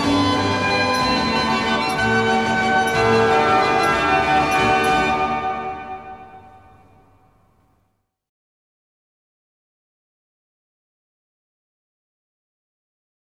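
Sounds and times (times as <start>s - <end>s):
Dutch street barrel organ playing: 0.0s - 7.2s.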